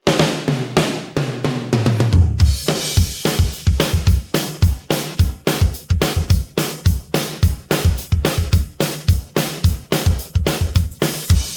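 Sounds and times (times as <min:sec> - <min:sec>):
drum pattern: 0:00.0 - 0:11.5.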